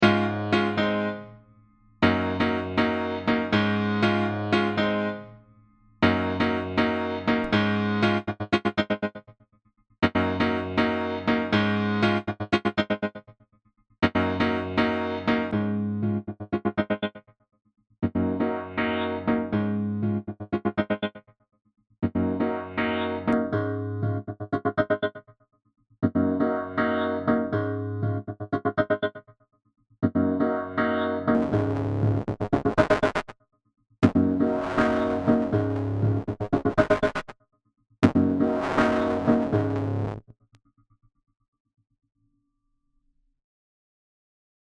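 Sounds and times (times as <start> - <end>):
Steinway piano: 0.0 - 9.2, 10.0 - 13.2, 14.0 - 17.1, 18.0 - 21.1, 22.0 - 25.2, 26.0 - 29.2, 30.0 - 33.3, 34.0 - 37.3, 38.0 - 40.2.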